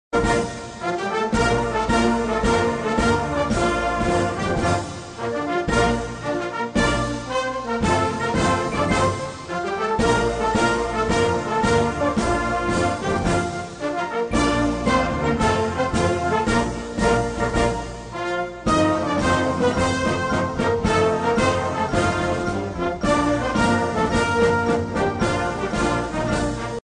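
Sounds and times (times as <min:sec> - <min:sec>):
parade march music: 0:00.2 - 0:26.8.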